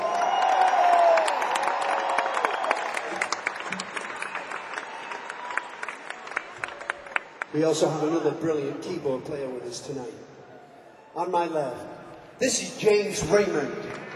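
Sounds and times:
audience applause for organ player: 0.0s - 8.2s, 13.9s - 14.1s
speech: 7.6s - 10.3s, 11.2s - 14.1s.

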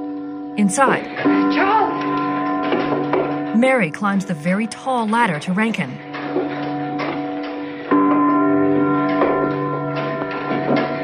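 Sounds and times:
tower clock bell striking: 0.0s - 11.0s
speech: 0.6s - 2.2s, 2.9s - 6.4s
softer lingering chimes: 0.6s - 2.7s, 3.4s - 8.2s.

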